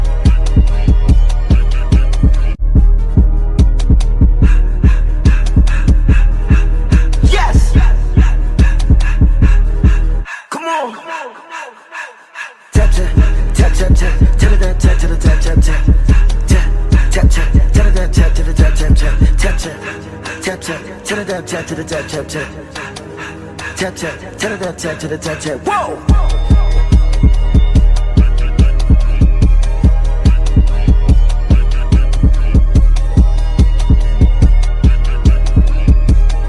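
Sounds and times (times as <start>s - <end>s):
sped up nightcore remix: 0.0s - 36.4s.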